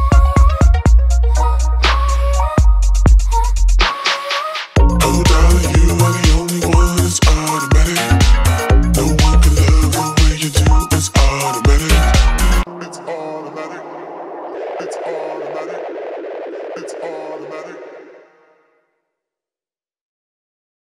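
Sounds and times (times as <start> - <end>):
jazz music: 0.2 - 3.4, 4.8 - 12.7.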